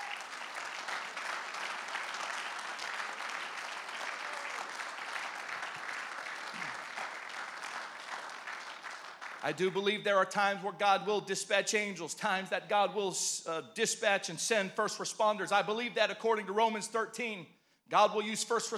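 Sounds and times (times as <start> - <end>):
audience hand clap for first responders: 0.0 - 10.1
speech: 9.4 - 18.7.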